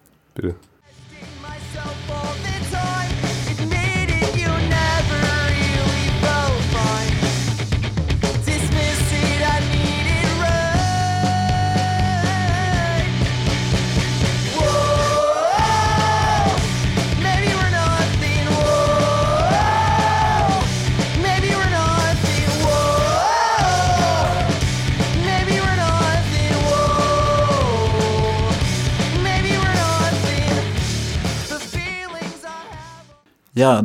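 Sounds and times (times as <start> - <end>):
speech: 0.4 - 0.7, 33.6 - 33.8
steady drums and bass: 0.9 - 33.1
loud dense rock song: 0.9 - 33.2
raised shouted-sounding vocals: 14.5 - 16.7, 18.4 - 20.8, 22.6 - 24.7.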